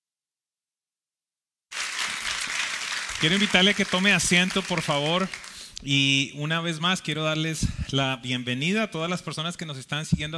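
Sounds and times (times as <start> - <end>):
audience applause: 1.7 - 5.7
speech: 3.2 - 10.3.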